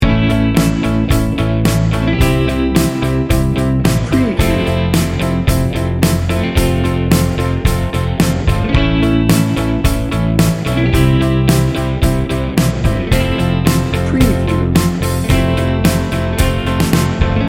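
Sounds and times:
heartwarming music loop: 0.0 - 17.4.

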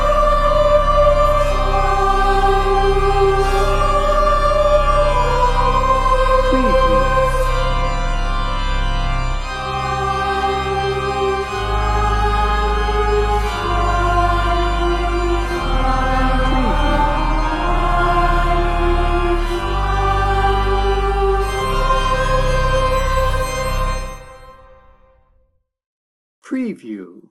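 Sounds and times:
choir singing: 0.0 - 8.0, 9.4 - 24.5
organ playing: 0.0 - 25.0.

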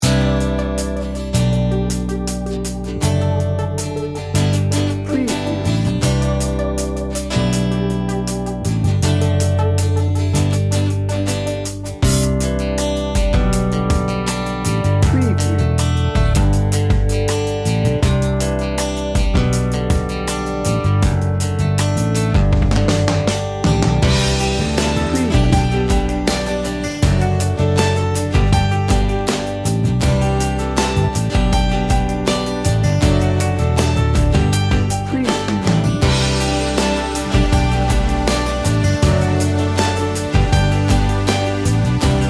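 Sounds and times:
warm laid-back music bed: 0.0 - 42.2.

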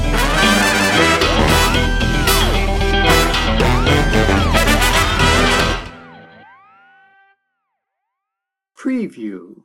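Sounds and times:
Memphis road trip music: 0.0 - 7.4.

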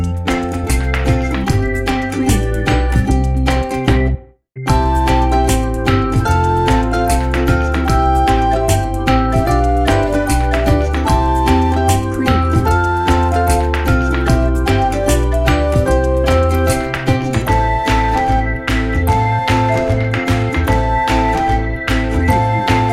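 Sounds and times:
cheery instrumental ukulele music for kids: 0.0 - 22.9.

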